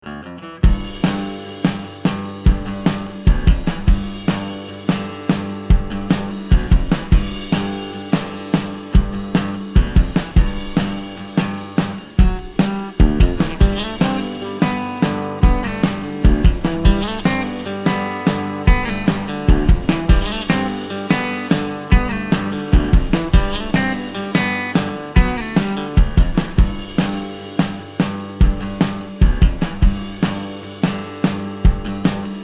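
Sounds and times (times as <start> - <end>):
noodling guitar riff: 0.0 - 30.3.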